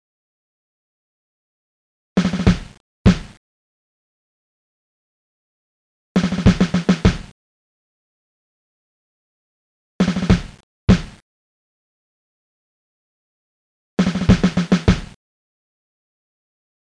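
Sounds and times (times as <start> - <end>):
snare drum: 2.2 - 3.4, 6.2 - 7.3, 10.0 - 11.2, 14.0 - 15.2.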